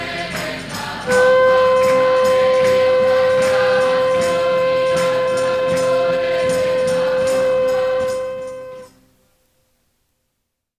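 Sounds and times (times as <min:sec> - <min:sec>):
shofar: 0:00.8 - 0:09.1.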